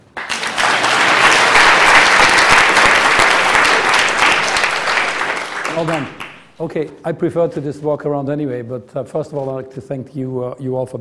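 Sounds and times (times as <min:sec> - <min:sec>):
audience applause: 0:00.0 - 0:06.6
speech: 0:05.8 - 0:10.9.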